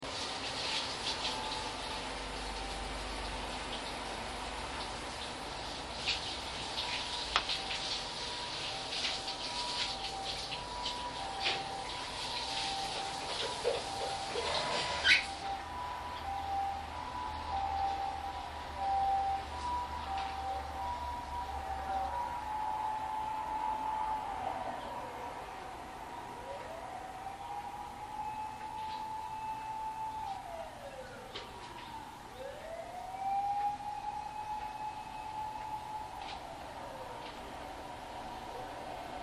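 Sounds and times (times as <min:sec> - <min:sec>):
bath siren: 0:00.4 - 0:39.2.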